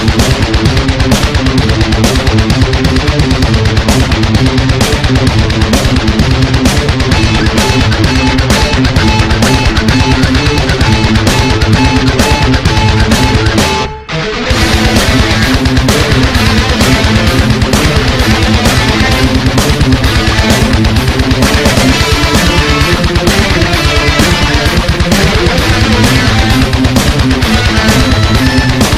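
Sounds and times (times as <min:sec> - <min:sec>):
metal music: 0:00.0 - 0:28.9.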